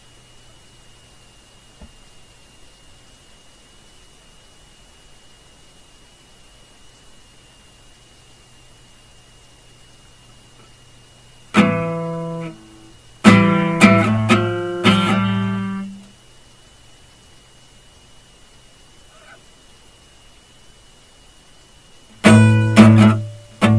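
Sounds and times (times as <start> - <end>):
acoustic session music: 11.5 - 16.1, 22.2 - 23.7.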